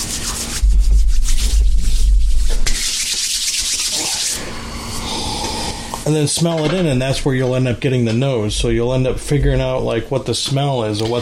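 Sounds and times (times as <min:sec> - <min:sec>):
hands rubbing a cork from a bottle of Cask 10-year whisky: 0:00.0 - 0:04.4
speech: 0:06.1 - 0:11.2.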